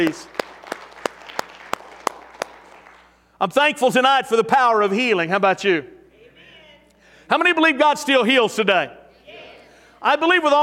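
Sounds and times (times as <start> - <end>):
speech: 0.0 - 0.4, 3.4 - 6.0, 7.3 - 9.0, 10.0 - 10.6
audience hand clapping: 0.0 - 3.2.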